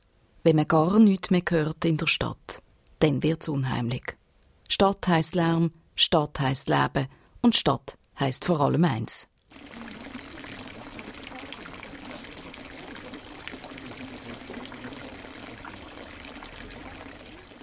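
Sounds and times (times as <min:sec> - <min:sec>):
speech: 0:00.4 - 0:09.7
fountain water splashing: 0:09.5 - 0:17.6.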